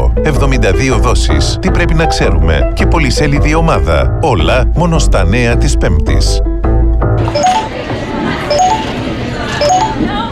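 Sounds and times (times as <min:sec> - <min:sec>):
speech: 0:00.2 - 0:06.6
phone message notification chimes: 0:07.3 - 0:07.9, 0:08.5 - 0:09.0, 0:09.6 - 0:10.3.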